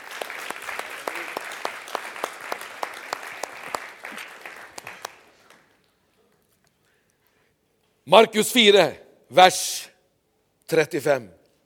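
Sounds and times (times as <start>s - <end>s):
applause: 0.0s - 6.1s
speech: 8.1s - 9.9s, 10.7s - 11.4s.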